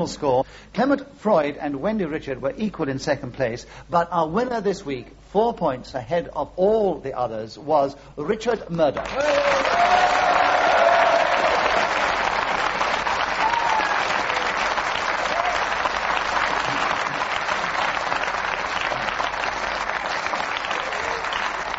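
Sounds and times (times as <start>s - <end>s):
speech: 0.0s - 10.3s
studio audience applause for a quiz show winner: 9.0s - 21.7s
crowd noise: 9.5s - 21.7s.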